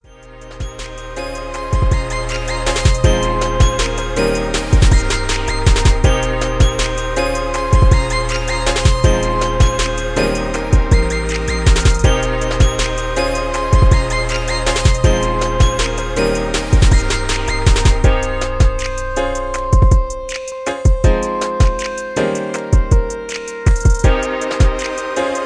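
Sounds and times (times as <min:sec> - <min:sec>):
instrumental music 160 BPM: 0:00.0 - 0:25.4.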